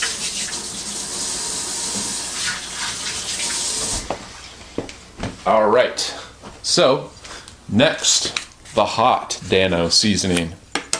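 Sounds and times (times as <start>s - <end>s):
running tap water while washing hands in a kitchen: 0.0s - 4.4s
speech: 5.5s - 10.6s.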